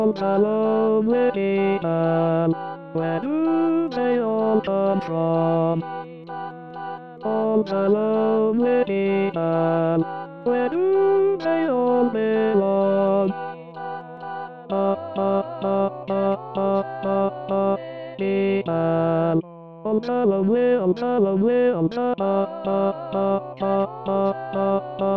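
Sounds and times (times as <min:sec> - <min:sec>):
tenor voice of SATB choir singing: 0:00.0 - 0:25.1.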